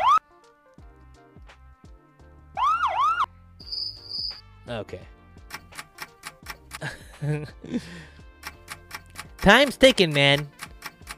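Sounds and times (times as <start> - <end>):
police siren: 0.0 - 0.2, 2.6 - 3.3
thin high tone: 3.7 - 4.4
speech: 4.7 - 5.2, 6.8 - 8.2, 9.4 - 10.6.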